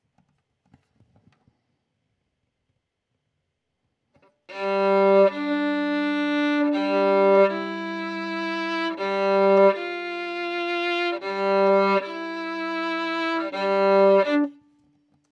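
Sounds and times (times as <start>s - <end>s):
violin: 4.5s - 14.8s.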